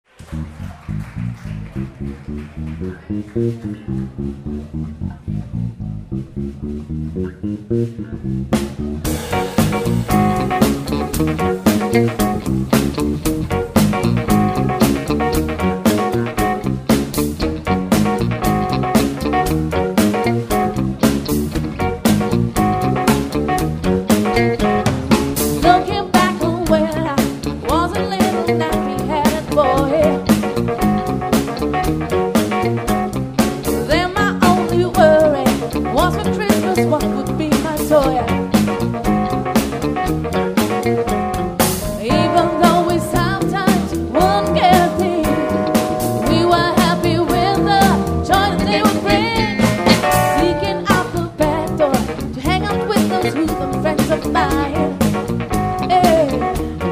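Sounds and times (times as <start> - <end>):
bass: 0.0 - 56.9
drums: 0.1 - 56.9
guitar: 0.1 - 56.9
vocals: 25.6 - 30.3, 33.6 - 38.4, 41.8 - 55.0, 55.8 - 56.8.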